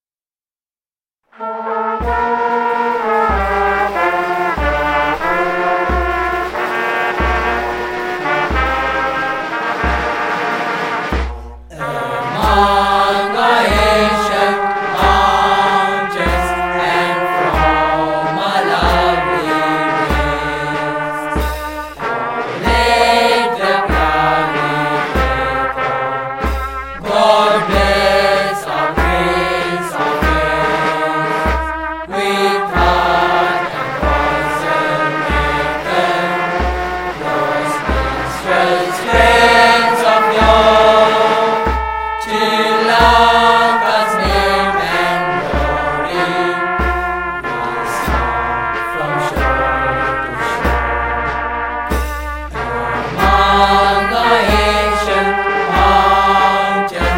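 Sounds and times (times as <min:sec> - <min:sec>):
national anthem: 0:01.4 - 0:57.1.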